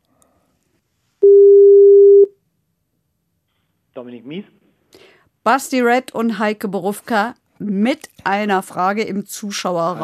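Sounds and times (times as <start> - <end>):
telephone ringing tone: 1.2 - 2.3
speech: 4.0 - 10.0.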